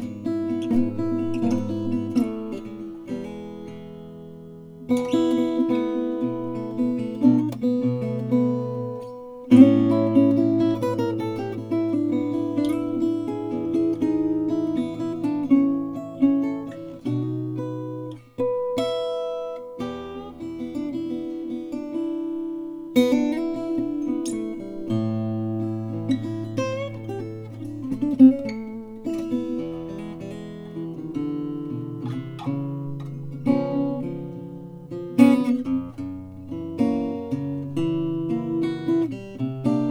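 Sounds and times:
Flammang EL35 TS Indian rosewood acoustic guitar: 0.0 - 39.8.

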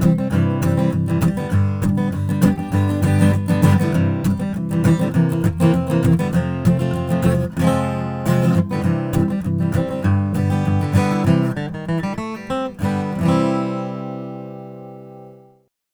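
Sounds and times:
Indian rosewood acoustic guitar: 0.0 - 15.7.

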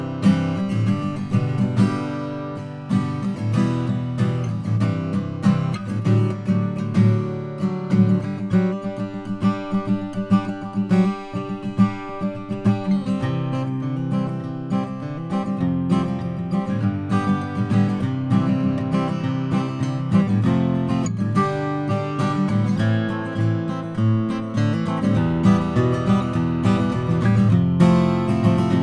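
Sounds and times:
koa OMC acoustic guitar with large sound hole: 0.0 - 28.8.

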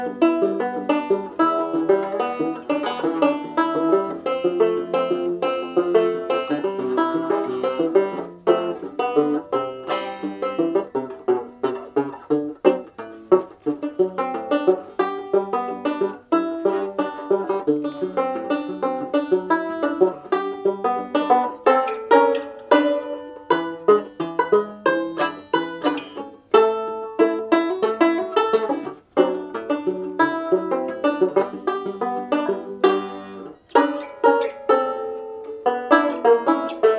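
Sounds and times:
banjo: 0.0 - 36.9
guitar: 0.0 - 36.9.

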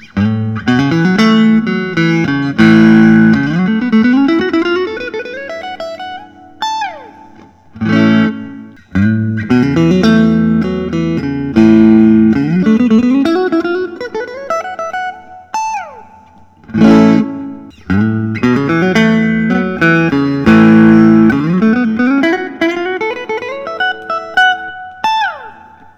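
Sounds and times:
S style electric guitar: 0.0 - 25.9.

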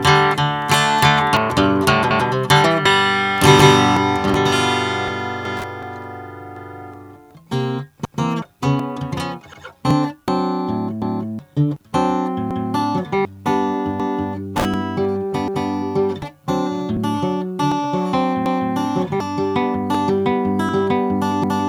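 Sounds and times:
Gibson Hummingbird acoustic guitar in natural finish: 0.0 - 21.6.

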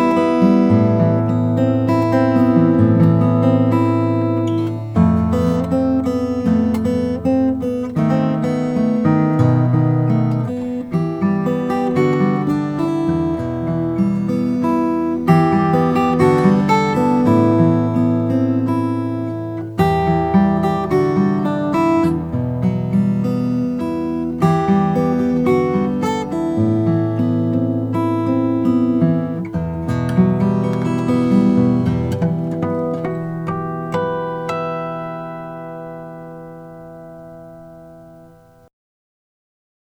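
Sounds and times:
Maingard cutaway acoustic guitar of Brazilian rosewood: 0.0 - 38.7.

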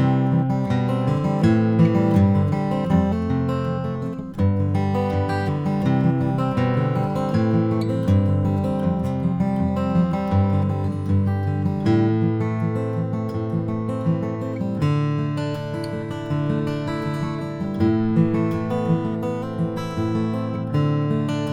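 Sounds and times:
Martin D-45 Indian rosewood acoustic guitar: 0.0 - 21.5.

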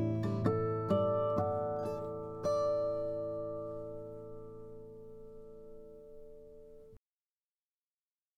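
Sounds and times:
acoustic guitar of Brazilian rosewood: 0.0 - 7.0.

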